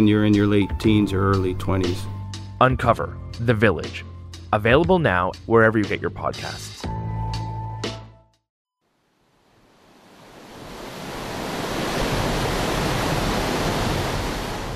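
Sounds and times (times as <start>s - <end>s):
speech: 0.0s - 6.9s
rushing water of the flooding Ottawa River: 9.4s - 14.7s.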